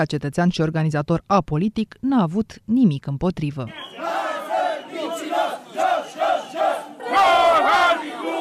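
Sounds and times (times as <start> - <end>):
speech: 0.0 - 4.1
crowd shouting at a protest: 3.7 - 8.3.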